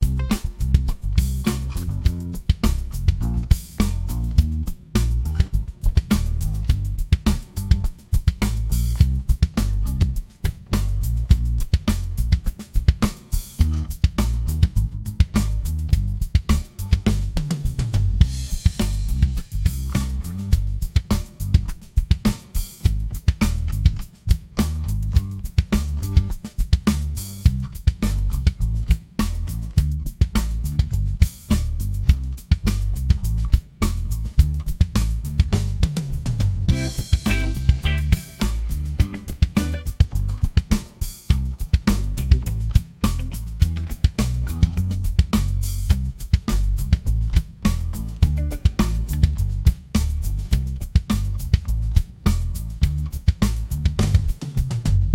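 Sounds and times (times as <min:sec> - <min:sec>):
breakbeat boogie music: 0:00.0 - 0:55.1.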